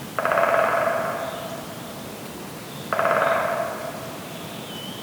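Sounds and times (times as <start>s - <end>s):
woodpeckers drumming: 0.2s - 4.7s
faint high calls: 2.9s - 4.9s.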